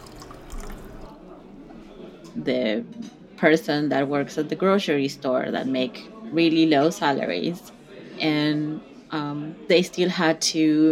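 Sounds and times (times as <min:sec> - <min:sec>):
wine being poured into a glass: 0:00.0 - 0:01.2
speech: 0:02.4 - 0:10.9.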